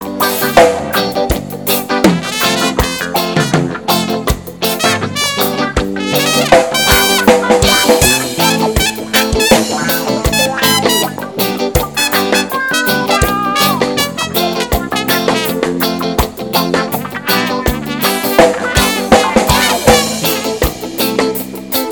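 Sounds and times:
instrumental music: 0:00.0 - 0:21.9.

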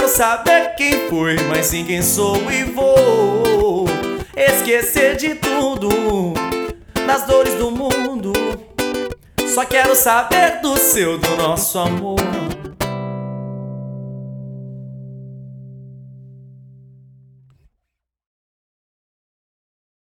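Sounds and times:
person singing: 0:00.0 - 0:13.0
acoustic guitar: 0:00.0 - 0:17.6.

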